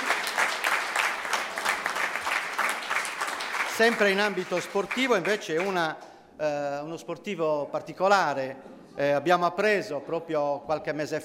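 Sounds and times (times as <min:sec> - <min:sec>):
applause: 0:00.0 - 0:05.9
speech: 0:03.8 - 0:11.2.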